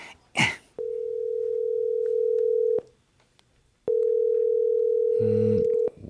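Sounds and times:
ringback tone on an outgoing phone call: 0.8s - 2.8s, 3.9s - 6.0s.

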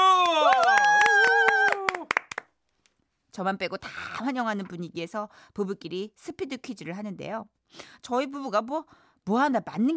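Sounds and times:
audience clapping in unison: 0.1s - 2.6s
speech: 3.4s - 9.9s.

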